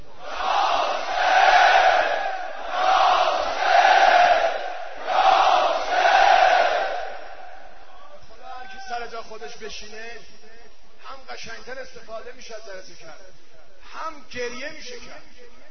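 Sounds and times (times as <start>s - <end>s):
large crowd chanting in unison: 0.0s - 7.8s.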